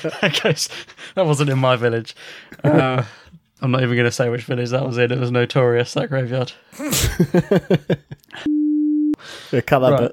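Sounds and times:
speech: 0.0 - 10.1
laughter: 6.8 - 8.5
censor beep over speech: 8.5 - 9.2.

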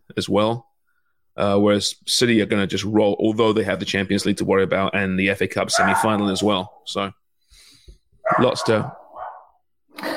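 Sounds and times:
speech: 0.1 - 0.7, 1.4 - 7.6, 8.3 - 9.0
pet dog barking: 5.7 - 6.9, 8.2 - 9.6.

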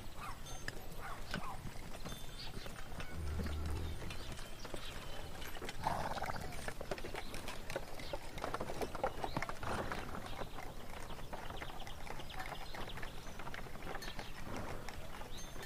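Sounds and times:
horse carts clip-clopping through a town: 0.0 - 15.6
farm animals calling: 0.1 - 7.0.

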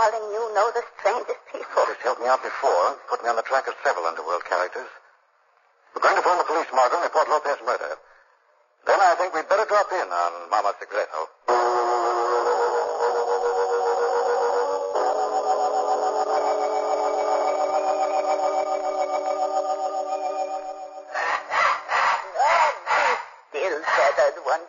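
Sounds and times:
speech: 0.1 - 5.0, 6.2 - 7.8, 9.8 - 11.4
steady humming musical tone: 11.5 - 21.2
pet bird squawking: 21.2 - 24.4.

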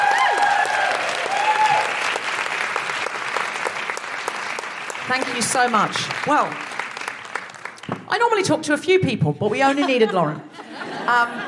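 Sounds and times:
audience applause: 0.0 - 8.2
speech: 5.1 - 6.7, 8.1 - 10.5, 11.1 - 11.4
laughter: 9.4 - 11.4.

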